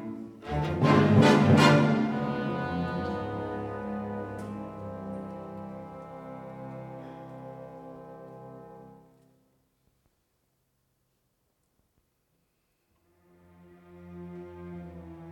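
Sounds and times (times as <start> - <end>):
orchestra playing a symphony in D minor: 0.0 - 9.3, 13.1 - 15.2.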